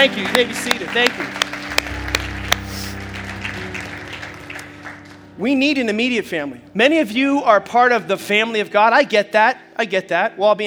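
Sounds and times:
speech: 0:00.0 - 0:01.5, 0:05.4 - 0:10.6
audience hand clapping: 0:00.0 - 0:06.1.

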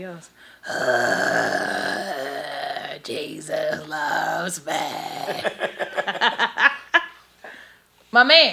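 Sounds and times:
speech: 0:00.0 - 0:01.9, 0:03.0 - 0:06.4, 0:08.1 - 0:08.5
man snoring: 0:00.6 - 0:05.6.

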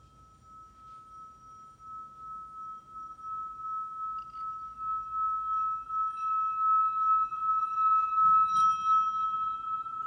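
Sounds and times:
healing bowl ringing: 0:00.0 - 0:10.0.

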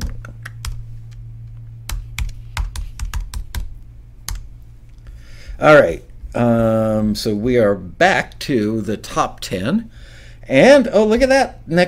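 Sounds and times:
steady low hum: 0:00.0 - 0:11.8
password being typed on a small computer keyboard: 0:01.9 - 0:03.7
speech: 0:05.6 - 0:11.8.

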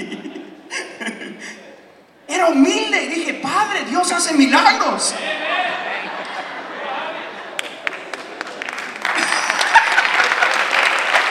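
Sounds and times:
laughter: 0:00.0 - 0:01.8, 0:05.2 - 0:11.3
speech: 0:02.4 - 0:05.8
audience applause: 0:06.0 - 0:11.3.

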